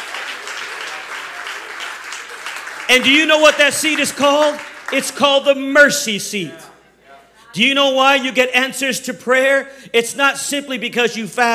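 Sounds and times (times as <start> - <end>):
congregation clapping hands during a church service: 0.0 - 6.8
speech: 2.9 - 6.7, 7.6 - 11.5.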